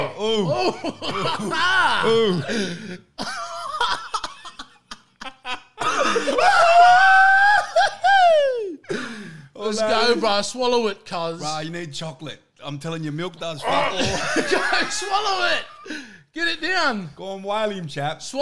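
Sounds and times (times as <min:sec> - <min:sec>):
excited voices: 0:00.0 - 0:02.8, 0:05.8 - 0:08.8, 0:09.6 - 0:11.6, 0:13.4 - 0:16.0
loud strained wailing vocal sound: 0:00.0 - 0:02.8, 0:06.0 - 0:08.8, 0:13.6 - 0:14.2
man coughing: 0:00.0 - 0:04.6, 0:05.8 - 0:06.5
laughter: 0:00.0 - 0:08.8, 0:13.7 - 0:16.0
speech: 0:00.1 - 0:03.3, 0:09.7 - 0:18.4.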